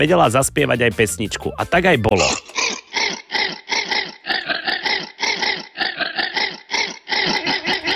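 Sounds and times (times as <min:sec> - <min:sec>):
speech: 0:00.0 - 0:02.6
baby llama vocalizing: 0:02.1 - 0:07.9.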